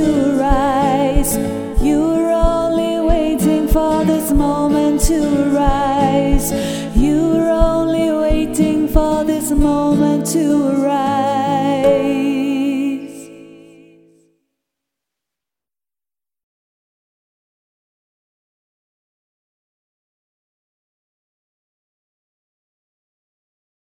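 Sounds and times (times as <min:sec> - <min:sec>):
soprano singing: 0:00.0 - 0:14.2.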